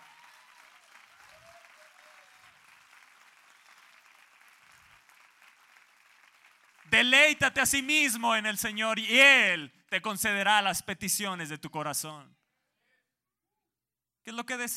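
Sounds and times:
people whooping: 0:00.0 - 0:02.8
audience applause: 0:00.0 - 0:07.4
speech: 0:06.9 - 0:12.4, 0:14.3 - 0:14.7.

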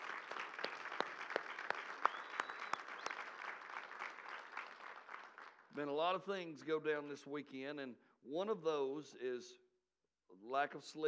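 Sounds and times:
round of applause: 0:00.0 - 0:05.7
speech: 0:05.8 - 0:09.6, 0:10.4 - 0:11.0.

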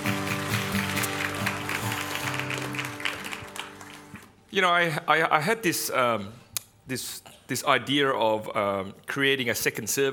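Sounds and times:
audience applause for worship team: 0:00.0 - 0:04.5
speech: 0:04.5 - 0:10.1.

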